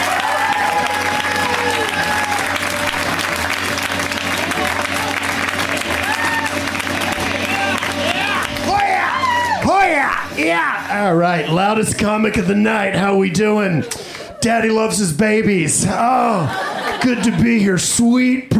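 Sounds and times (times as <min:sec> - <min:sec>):
audience whoops and shouting voices: 0:00.0 - 0:02.6, 0:06.0 - 0:06.6, 0:07.5 - 0:10.8
comedy show audience clapping: 0:00.0 - 0:10.4
speech: 0:11.1 - 0:18.5
laughter: 0:15.8 - 0:18.0.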